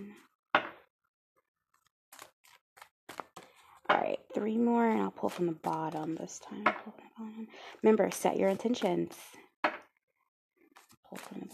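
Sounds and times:
tarot cards being shuffled: 1.7 - 3.8, 4.8 - 6.3, 10.7 - 11.5
speech: 4.0 - 9.4.

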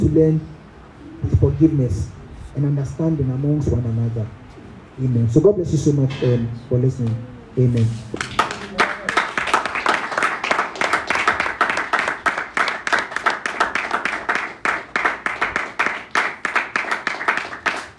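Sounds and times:
speech: 0.0 - 0.6, 1.2 - 4.4, 5.0 - 8.4
audience clapping hands: 7.8 - 17.9.

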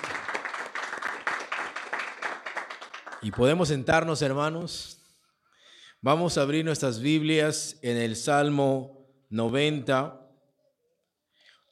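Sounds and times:
audience clapping together: 0.0 - 3.8
speech: 3.2 - 5.0, 6.0 - 10.2.

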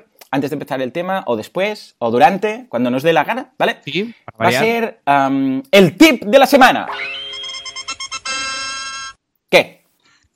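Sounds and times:
speech: 0.3 - 7.2, 9.5 - 9.8
synthetic cartoon theme jingle: 6.9 - 9.2.

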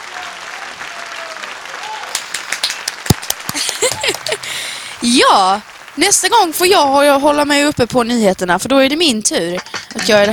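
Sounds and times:
small group clapping: 0.0 - 6.5
laughter: 3.5 - 4.8
speech: 3.6 - 10.3.

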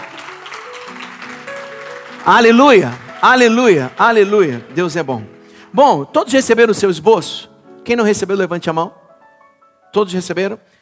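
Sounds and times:
audience applauding: 0.0 - 5.5
speech: 2.2 - 9.0, 9.9 - 10.8.

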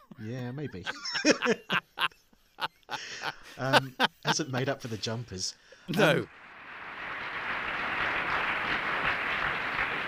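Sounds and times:
laughter: 0.0 - 4.8
speech: 0.2 - 2.2, 3.6 - 6.4
studio audience applause: 6.0 - 10.0.

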